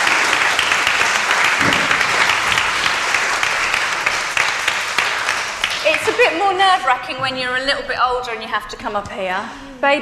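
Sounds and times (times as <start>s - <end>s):
crowd applause: 0.0s - 6.7s
speech: 6.3s - 10.0s.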